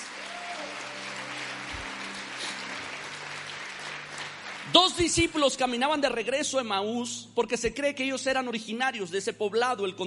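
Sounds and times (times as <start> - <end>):
audience applause: 0.0 - 5.6
speech: 4.7 - 10.0.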